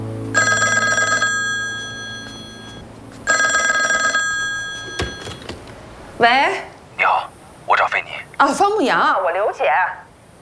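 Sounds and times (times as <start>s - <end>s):
telephone ringing: 0.3s - 5.6s
speech: 6.2s - 6.7s, 8.4s - 10.0s.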